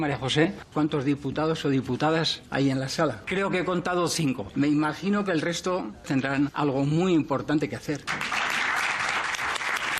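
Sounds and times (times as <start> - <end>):
speech: 0.0 - 8.4
applause from many people in a parliament chamber: 8.0 - 9.9.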